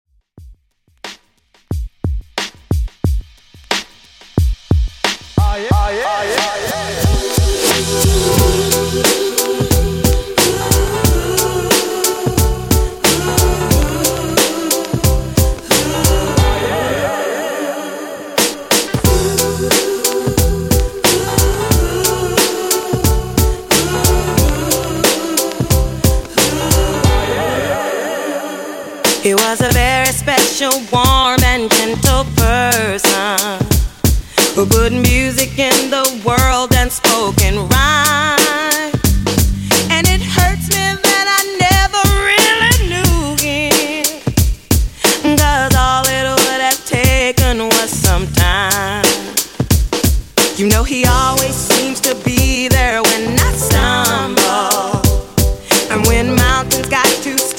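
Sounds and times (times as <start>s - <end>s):
90s funk beat at 90 BPM: 0.4s - 17.2s, 18.4s - 27.8s, 29.0s - 57.5s.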